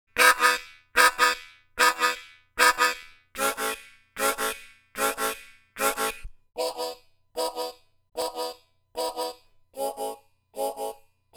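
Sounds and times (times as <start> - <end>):
harmonica: 0.2 - 11.3.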